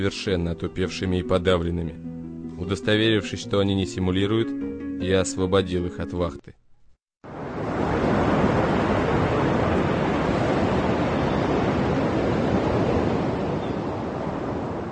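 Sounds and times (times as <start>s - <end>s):
speech: 0.0s - 6.6s
stormy sea waves: 7.2s - 14.9s.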